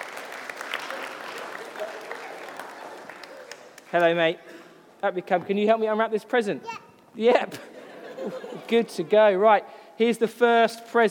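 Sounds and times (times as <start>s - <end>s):
audience clapping: 0.0s - 4.2s
speech: 3.9s - 11.0s
laughter: 7.5s - 8.9s.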